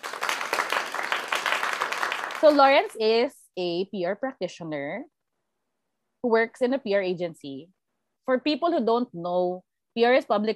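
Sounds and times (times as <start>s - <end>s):
applause sound effect: 0.0s - 3.0s
speech: 2.4s - 5.1s, 6.2s - 10.5s.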